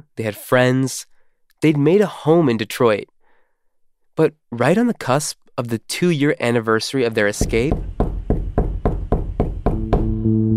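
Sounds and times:
speech: 0:00.2 - 0:03.1, 0:04.2 - 0:07.9
heavy knocks on the door of a home in Detroit: 0:07.4 - 0:10.1.

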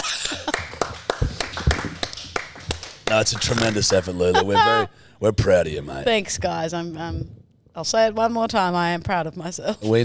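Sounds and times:
small group hand claps: 0:00.0 - 0:04.5
speech: 0:03.2 - 0:10.0.

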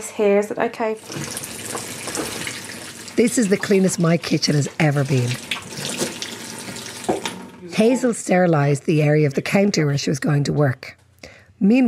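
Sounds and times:
speech: 0:00.0 - 0:01.9, 0:03.2 - 0:05.5, 0:07.8 - 0:11.0, 0:11.6 - 0:11.8
running tap water, washing hands: 0:01.0 - 0:07.9.

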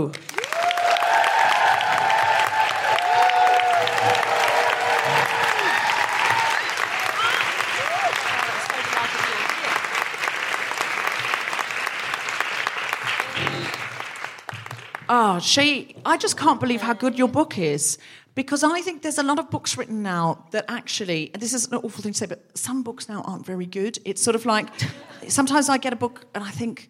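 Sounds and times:
speech: 0:00.0 - 0:00.3, 0:15.4 - 0:26.8
audience applauding to welcome a guest onto a live show: 0:00.0 - 0:15.1
audience woohooing: 0:00.3 - 0:11.2, 0:13.0 - 0:14.1.

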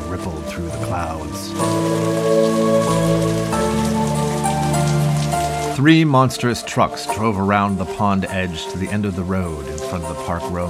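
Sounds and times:
heavy rain: 0:00.0 - 0:10.6
speech: 0:00.2 - 0:02.4, 0:05.8 - 0:10.6.

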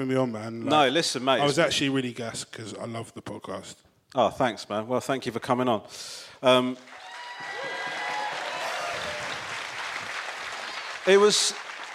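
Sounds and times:
speech: 0:00.0 - 0:07.0, 0:11.1 - 0:11.6
muted audience applause: 0:06.8 - 0:11.9.

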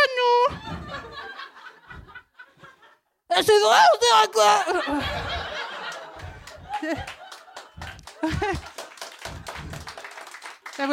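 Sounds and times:
people laughing: 0:00.5 - 0:03.0, 0:04.4 - 0:10.3
speech: 0:03.4 - 0:05.4, 0:06.8 - 0:07.2, 0:08.2 - 0:08.7
overlapping voices: 0:05.0 - 0:10.9
small group clapping: 0:05.2 - 0:10.9.

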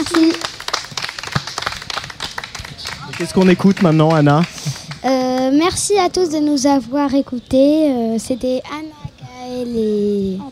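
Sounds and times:
applause: 0:00.0 - 0:05.5
speech: 0:03.2 - 0:08.8, 0:09.6 - 0:10.5.

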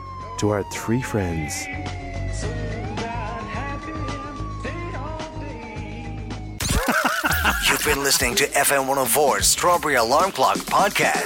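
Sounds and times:
police siren: 0:00.0 - 0:06.6
speech: 0:00.4 - 0:03.0, 0:07.4 - 0:11.2
laughter: 0:06.6 - 0:08.3.

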